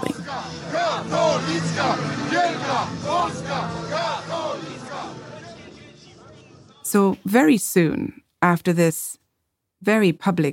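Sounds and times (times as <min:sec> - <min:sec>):
large crowd chanting threateningly: 0:00.0 - 0:06.9
speech: 0:06.9 - 0:09.2, 0:09.8 - 0:10.5.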